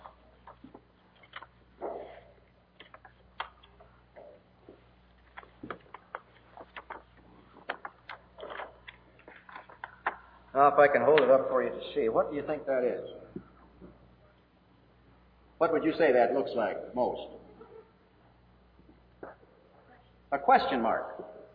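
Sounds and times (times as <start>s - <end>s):
folded object crinkling as it is unfolded: 5.2s - 10.2s
speech: 10.6s - 13.2s, 15.6s - 17.4s, 20.5s - 21.3s.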